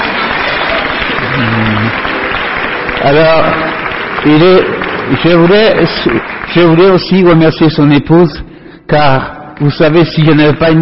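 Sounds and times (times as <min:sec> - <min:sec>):
audience applause: 0:00.0 - 0:07.9
speech: 0:03.0 - 0:10.8.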